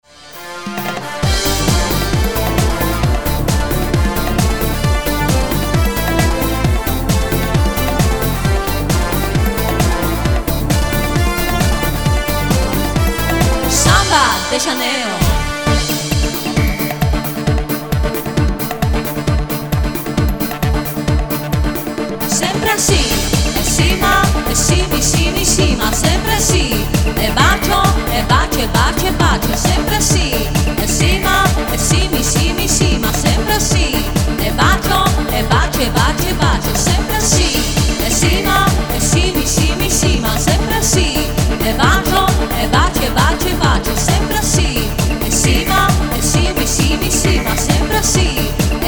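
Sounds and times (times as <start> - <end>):
samba music: 0.0 - 48.8.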